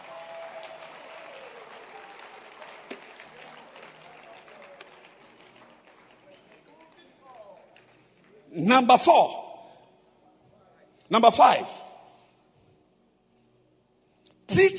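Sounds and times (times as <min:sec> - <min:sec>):
church congregation clapping during a worship service: 0:00.0 - 0:08.9
speech: 0:08.6 - 0:09.4, 0:11.1 - 0:11.8.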